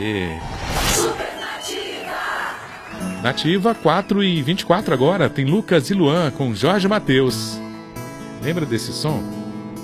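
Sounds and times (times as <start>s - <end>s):
speech: 0.0s - 1.2s, 3.2s - 7.6s, 8.4s - 9.4s
applause and cheering sound effect: 1.0s - 4.9s.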